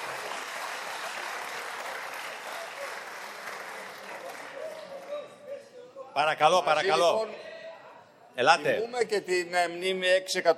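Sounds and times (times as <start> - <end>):
large crowd applauding in parliament: 0.0 - 5.4
speech: 6.2 - 7.5, 8.4 - 10.5.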